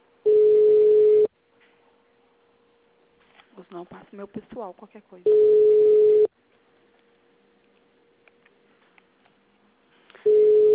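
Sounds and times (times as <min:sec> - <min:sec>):
telephone line tone while placing a call: 0:00.3 - 0:01.3, 0:05.3 - 0:06.3, 0:10.2 - 0:10.7
speech: 0:03.7 - 0:05.9.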